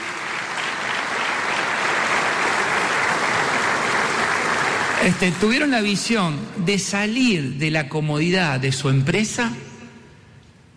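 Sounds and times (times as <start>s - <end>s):
audience applause after speech request: 0.0s - 5.7s
speech: 5.0s - 9.7s.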